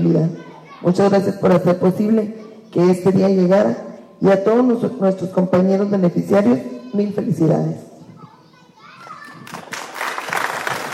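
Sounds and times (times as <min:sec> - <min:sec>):
speech: 0:00.0 - 0:07.9
audience applause: 0:09.4 - 0:10.9.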